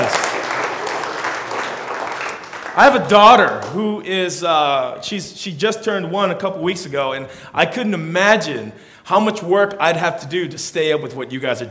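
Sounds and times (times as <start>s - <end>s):
audience applause for the parents: 0.0s - 3.8s
speech: 2.8s - 11.7s.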